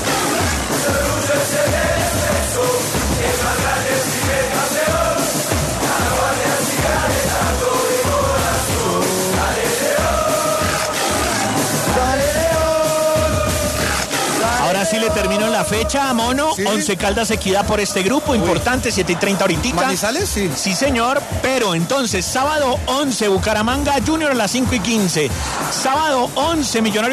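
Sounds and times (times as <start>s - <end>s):
stadium crowd chanting and cheering: 0.0s - 27.1s
speech: 15.1s - 27.1s.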